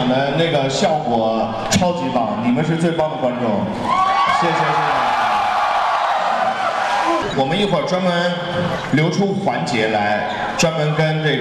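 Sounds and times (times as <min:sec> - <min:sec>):
speech: 0:00.1 - 0:05.1, 0:07.4 - 0:11.3
audience cheering and applause: 0:03.8 - 0:07.6.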